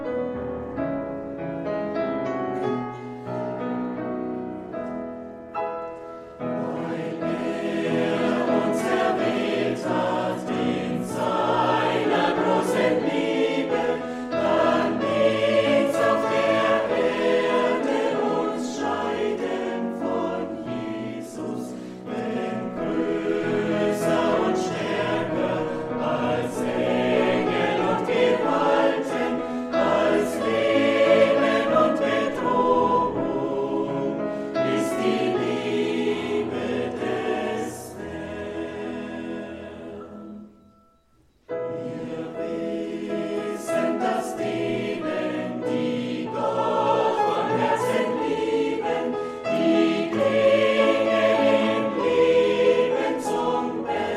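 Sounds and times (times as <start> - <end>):
choir singing: 0.1 - 54.1.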